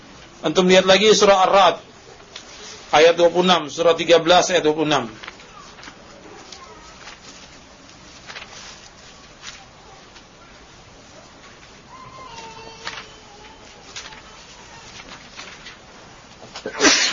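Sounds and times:
speech: 0.4s - 1.9s, 2.9s - 5.2s
quiet shuffling: 1.9s - 3.6s, 4.4s - 16.7s
loud sneeze: 16.6s - 17.1s.

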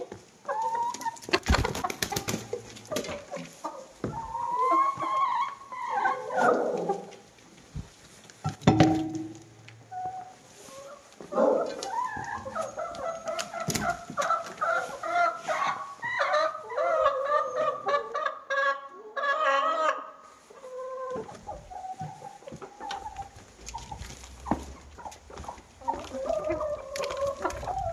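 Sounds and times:
chickens clucking: 0.0s - 27.9s
sharp knock: 8.7s - 9.5s.

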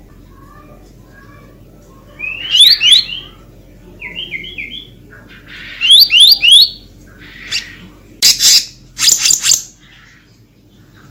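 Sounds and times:
selendang biru bird whistling and chattering: 2.2s - 3.3s, 5.5s - 9.8s.

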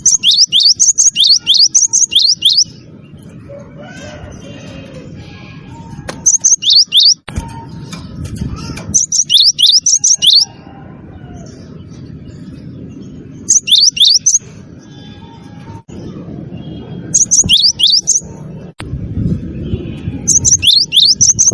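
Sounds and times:
bird chirping: 0.0s - 3.6s, 6.1s - 8.2s, 8.9s - 10.5s, 11.1s - 18.8s, 19.5s - 21.5s.

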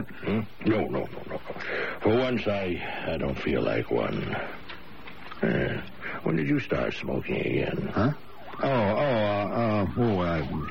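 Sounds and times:
speech: 0.1s - 1.1s, 2.0s - 4.6s, 5.4s - 10.7s
ambulance siren approaching: 7.2s - 10.7s.

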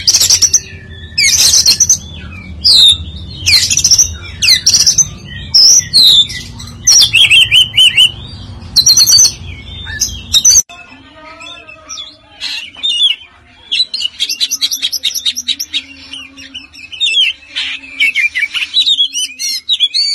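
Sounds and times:
Oriental magpie-robin chattering song of scratchy and whistled notes: 0.0s - 10.6s, 11.4s - 20.1s.

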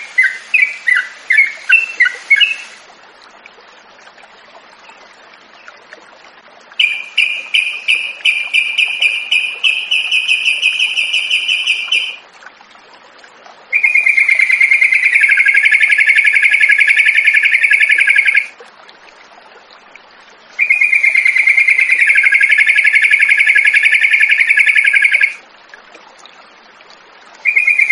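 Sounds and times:
yellow-vented bulbul singing: 0.0s - 2.8s, 6.8s - 12.2s, 13.8s - 18.5s, 20.6s - 25.4s, 27.5s - 27.9s.

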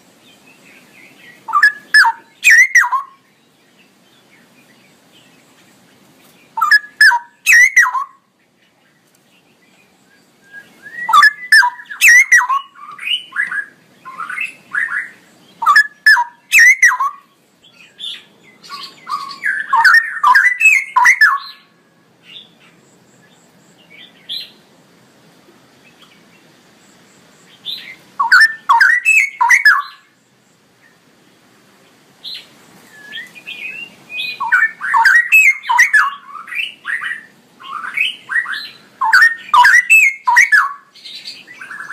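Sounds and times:
straw-headed bulbul song: 0.3s - 3.3s, 6.6s - 8.3s, 10.0s - 21.7s, 27.7s - 30.1s, 32.4s - 41.9s.

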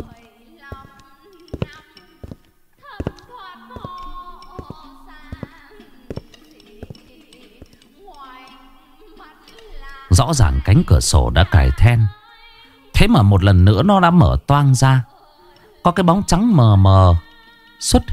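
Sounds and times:
heavy footsteps across a yard: 0.0s - 7.8s
speech: 10.2s - 12.2s, 13.0s - 15.1s, 15.8s - 18.1s.

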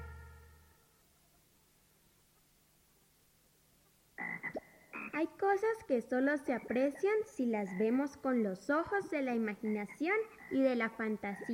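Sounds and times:
frog croaking: 4.2s - 5.4s, 6.5s - 8.4s, 9.5s - 11.5s
speech: 5.2s - 11.5s.

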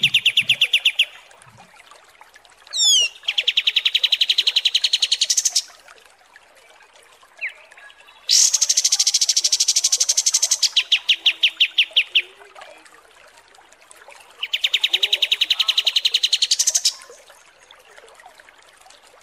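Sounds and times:
kapas tembak trilling and chipping: 0.0s - 1.2s, 2.8s - 5.7s, 8.3s - 12.3s, 14.4s - 17.1s.

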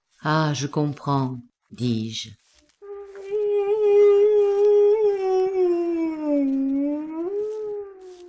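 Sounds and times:
speech: 0.2s - 2.4s
dog howling mournfully: 2.8s - 8.2s.

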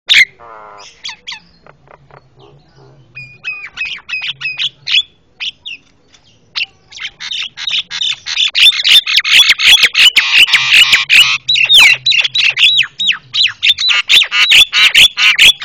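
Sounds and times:
Javan myna calls: 0.1s - 5.8s, 6.6s - 15.6s.

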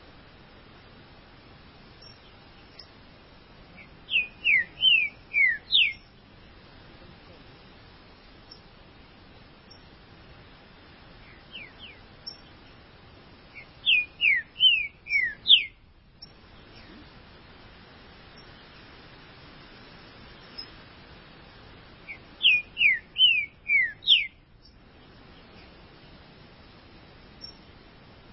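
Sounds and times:
green-winged saltator whistled song: 3.8s - 6.0s, 13.5s - 15.8s, 22.1s - 24.4s.

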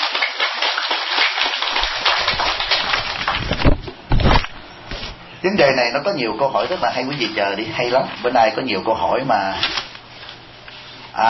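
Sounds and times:
audience applause: 0.0s - 3.7s
speech: 5.4s - 9.8s.

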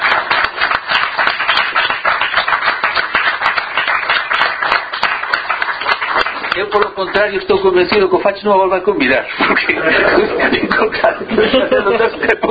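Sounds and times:
audience applause: 0.0s - 7.6s
speech: 6.6s - 12.4s
laughter: 9.3s - 12.4s.

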